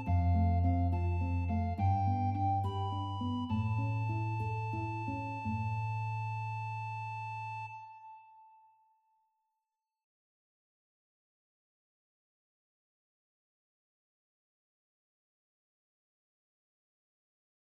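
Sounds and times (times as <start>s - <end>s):
guitar playing a duet piece: 0.0s - 8.8s
soprano recorder playing a duet piece: 0.0s - 8.8s.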